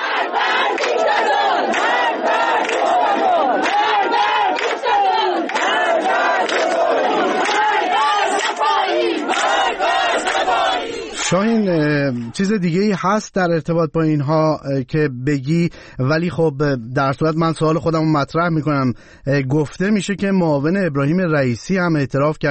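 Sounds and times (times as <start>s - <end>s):
crowd chanting protest slogans at a grave: 0.0s - 11.6s
speech: 11.3s - 22.4s.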